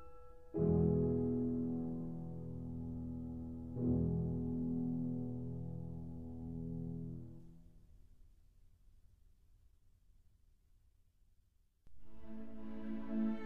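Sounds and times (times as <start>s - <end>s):
flute and piano lullaby: 0.0s - 5.9s, 12.0s - 13.4s.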